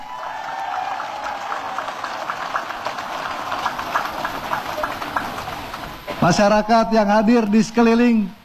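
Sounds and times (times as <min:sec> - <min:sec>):
crowd applause: 0:00.0 - 0:06.3
speech: 0:06.2 - 0:08.4.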